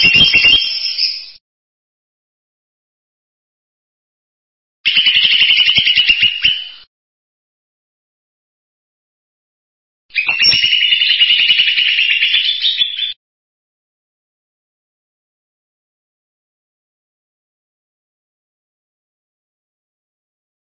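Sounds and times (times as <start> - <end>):
bird song: 0.0 - 1.4, 4.9 - 6.9, 10.1 - 13.2.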